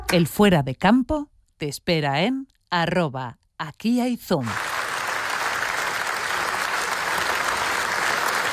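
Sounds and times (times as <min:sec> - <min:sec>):
speech: 0:00.1 - 0:04.7
audience ovation: 0:04.5 - 0:08.5.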